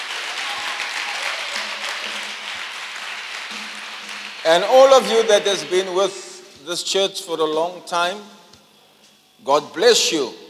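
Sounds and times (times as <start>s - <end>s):
crowd applauding: 0.0s - 6.6s
speech: 4.5s - 8.4s, 9.4s - 10.4s.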